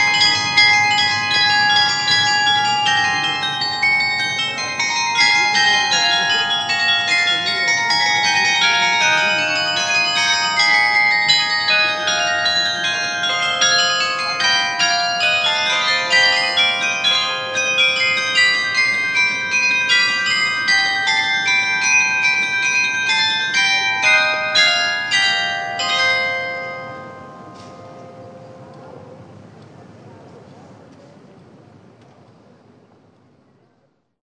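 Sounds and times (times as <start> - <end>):
carillon bells: 0.0 - 29.4.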